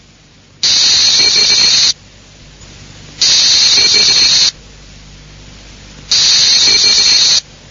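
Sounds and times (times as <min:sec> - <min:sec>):
high-speed Morse meteor scatter burst chirp: 0:00.6 - 0:02.0, 0:03.2 - 0:04.6, 0:06.1 - 0:07.4.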